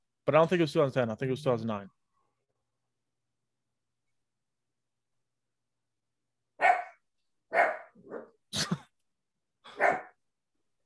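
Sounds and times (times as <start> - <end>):
speech: 0.3 - 2.0
dog barking: 6.6 - 8.4, 9.7 - 10.2.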